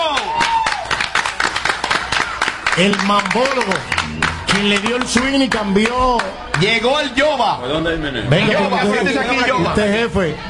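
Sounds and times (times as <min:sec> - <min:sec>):
applause: 0:00.0 - 0:06.8
speech: 0:02.8 - 0:10.4.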